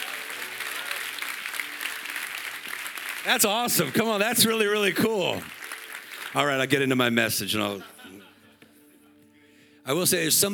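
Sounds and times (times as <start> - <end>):
audience clapping: 0.0 - 7.8
speech: 3.2 - 5.6, 6.3 - 7.9, 9.8 - 10.5
laughter: 7.6 - 8.8.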